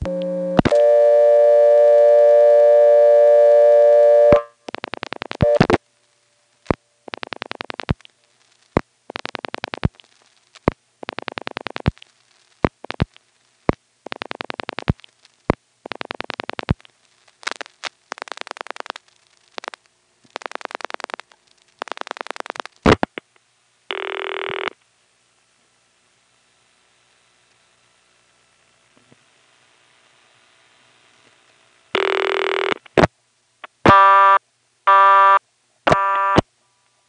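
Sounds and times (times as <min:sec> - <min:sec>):
steady telephone supervision test tone in the Goldston exchange: 0:00.0 - 0:04.6, 0:05.3 - 0:05.8, 0:23.9 - 0:24.8, 0:32.0 - 0:32.8, 0:33.9 - 0:36.4
sharp telephone line clicks: 0:04.7 - 0:05.8, 0:06.7 - 0:08.1, 0:08.8 - 0:13.3, 0:14.0 - 0:15.2, 0:15.8 - 0:23.4.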